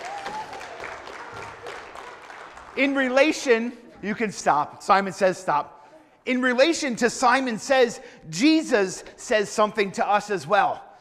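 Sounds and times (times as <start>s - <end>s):
audience applause: 0.0s - 2.8s
speech: 2.8s - 10.8s.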